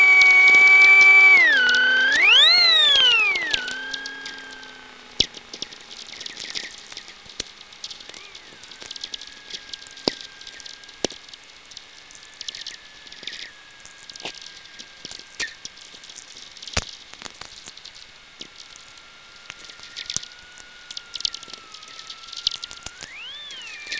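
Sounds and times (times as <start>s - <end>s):
vehicle: 0.2s - 9.5s.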